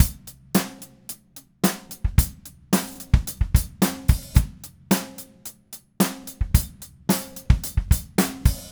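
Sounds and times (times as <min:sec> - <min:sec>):
DW Red Maple drum kit groove: 0:00.0 - 0:08.7.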